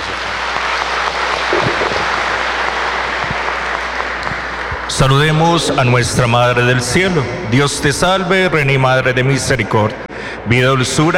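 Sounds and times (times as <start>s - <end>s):
audience applauding: 0.0s - 7.1s
speech: 5.0s - 11.1s.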